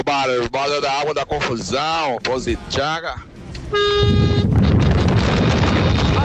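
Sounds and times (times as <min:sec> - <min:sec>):
speech: 0:00.0 - 0:04.5
chorus of honking car horns: 0:03.6 - 0:06.1.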